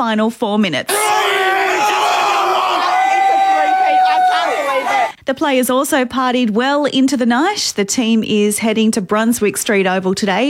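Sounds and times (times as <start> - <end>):
speech: 0.0 - 1.2, 5.3 - 10.4
Lions fans roaring and cheering in Melbourne: 0.9 - 5.2.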